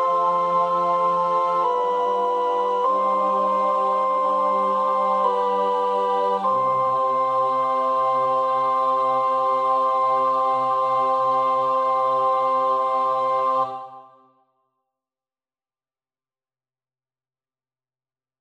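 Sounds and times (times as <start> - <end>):
soprano practising a choir part: 0.0 - 14.3.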